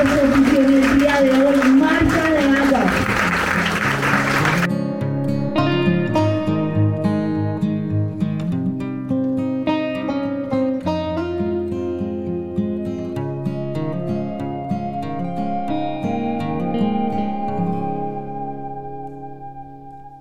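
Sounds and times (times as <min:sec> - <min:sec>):
audience applause: 0:00.0 - 0:04.7
steady instrumental music: 0:02.8 - 0:20.1.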